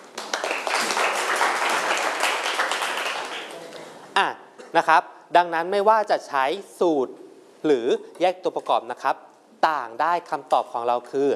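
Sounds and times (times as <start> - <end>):
group clapping: 0.0 - 3.8
speech: 4.2 - 11.3.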